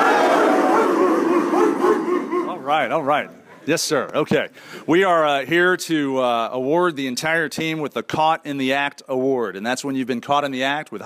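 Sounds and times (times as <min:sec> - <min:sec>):
football team barking like dogs: 0:00.0 - 0:02.9
speech: 0:02.7 - 0:11.0.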